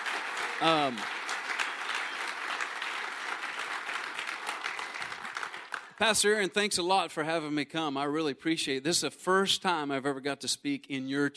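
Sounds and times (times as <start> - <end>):
audience applause: 0.0 - 6.4
speech: 0.6 - 1.2, 6.0 - 11.3.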